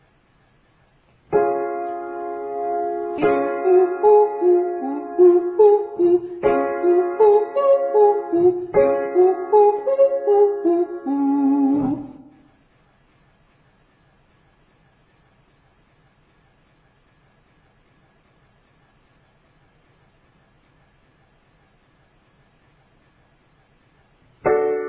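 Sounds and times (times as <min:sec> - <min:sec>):
ascending triads and octaves: 0:01.4 - 0:12.4.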